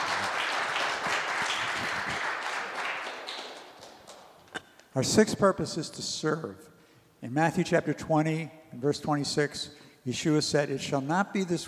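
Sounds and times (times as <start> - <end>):
audience applause: 0.0 - 4.3
speech: 5.0 - 11.6.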